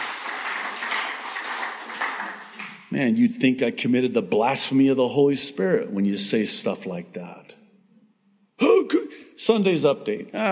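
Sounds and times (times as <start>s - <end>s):
audience clapping: 0.0s - 3.0s
speech: 2.9s - 7.6s, 9.4s - 10.4s.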